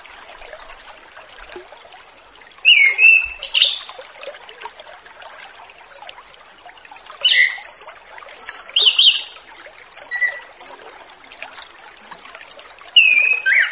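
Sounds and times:
Orange-headed thrush singing whistled and warbled notes: 2.7s - 4.2s, 7.2s - 10.4s, 13.0s - 13.7s.

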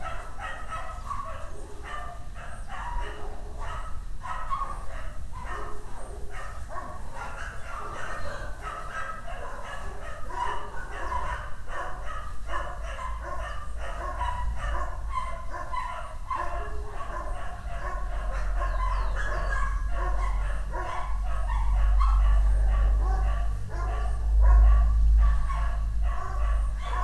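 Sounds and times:
dog barking: 0.0s - 27.0s.

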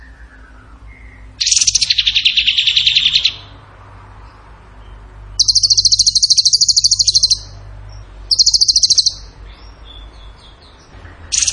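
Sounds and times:
bird song of fast high trills: 0.0s - 3.6s, 5.4s - 7.6s, 8.3s - 11.5s.

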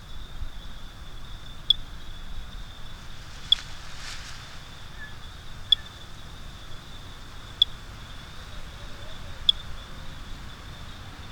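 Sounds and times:
Great Thrush chirping, Turdus fuscater, in Bogotá Colombia: 1.5s - 9.8s.

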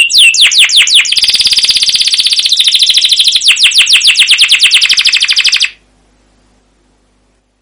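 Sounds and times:
canary singing: 0.0s - 5.8s.

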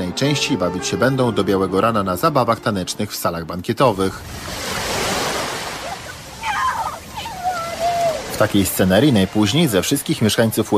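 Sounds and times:
speech: 0.2s - 5.0s, 8.4s - 10.7s
ocean surf in Hawaii: 3.8s - 10.7s
brief higher-pitched voices or calls over the water: 5.7s - 10.0s.

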